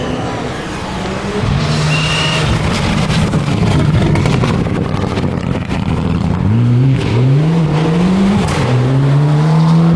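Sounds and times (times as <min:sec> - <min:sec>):
Mitsubishi Lancer rally car passing: 0:00.0 - 0:09.9.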